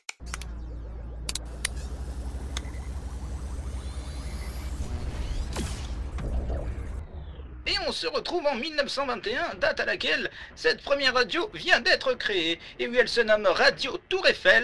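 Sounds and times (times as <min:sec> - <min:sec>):
time machine sound effect low mechanical rumble: 0:00.2 - 0:09.6
speech: 0:07.9 - 0:14.6.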